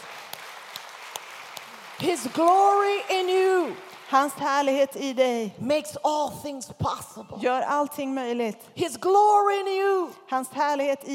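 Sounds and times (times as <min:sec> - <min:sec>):
audience applause: 0:00.0 - 0:04.1
speech: 0:02.0 - 0:11.1.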